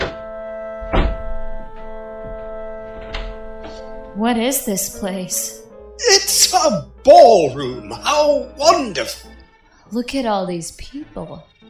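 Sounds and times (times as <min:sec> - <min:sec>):
door being kicked: 0:00.0 - 0:03.5
speech: 0:04.2 - 0:09.3, 0:09.9 - 0:11.5.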